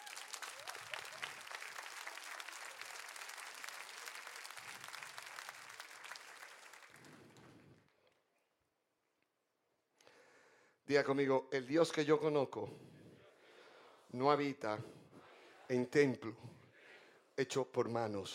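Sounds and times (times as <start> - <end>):
audience applause: 0.0 - 7.9
speech: 10.9 - 12.9, 14.1 - 15.0, 15.7 - 16.6, 17.4 - 18.3.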